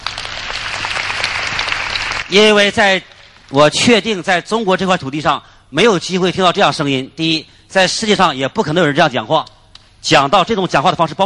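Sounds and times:
audience applause: 0.0s - 3.6s
speech: 2.3s - 11.2s.

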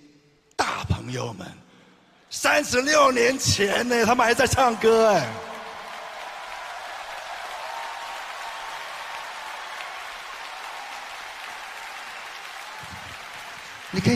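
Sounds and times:
speech: 1.1s - 1.7s, 2.3s - 5.5s, 13.9s - 14.1s
large crowd applauding: 4.0s - 14.1s.

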